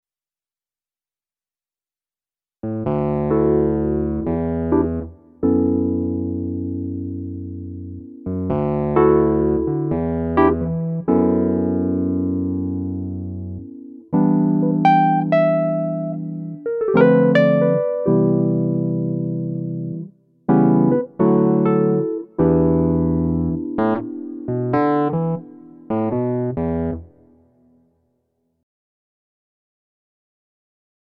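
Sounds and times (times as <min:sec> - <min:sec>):
Nord Piano 3 Wurlitzer electric piano sound: 0:02.7 - 0:27.3.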